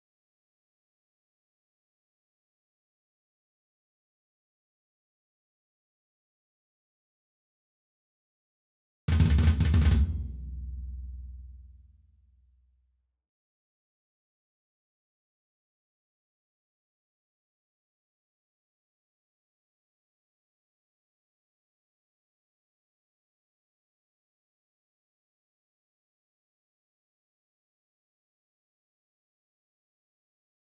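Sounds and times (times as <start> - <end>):
tom drums: 9.1 - 11.7.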